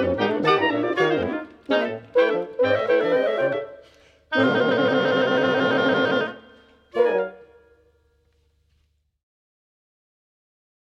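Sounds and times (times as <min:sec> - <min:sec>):
wind quintet: 0:00.0 - 0:08.1.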